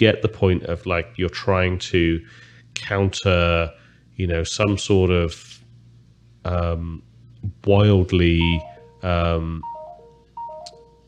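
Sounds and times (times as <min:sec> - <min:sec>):
speech: 0:00.0 - 0:05.6, 0:06.4 - 0:09.7
mobile phone notification chimes: 0:08.4 - 0:11.0.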